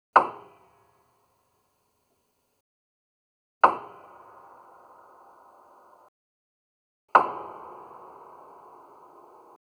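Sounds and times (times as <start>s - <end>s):
piano key: 7.1s - 9.6s.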